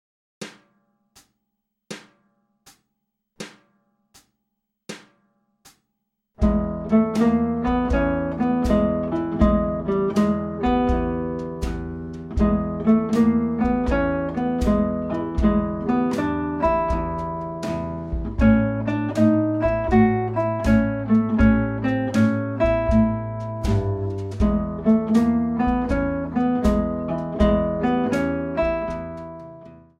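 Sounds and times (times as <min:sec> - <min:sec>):
guitar lesson playing: 0:06.4 - 0:29.9.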